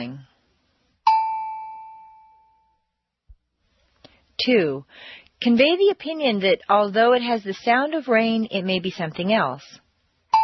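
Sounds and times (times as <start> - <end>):
response prompt ding tone: 1.1 - 2.9
speech: 4.4 - 9.8.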